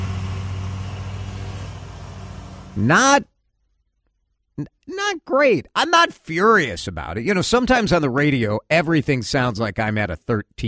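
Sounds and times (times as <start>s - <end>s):
riding lawnmower engine running: 0.0s - 3.2s
speech: 2.8s - 3.3s, 4.6s - 10.6s.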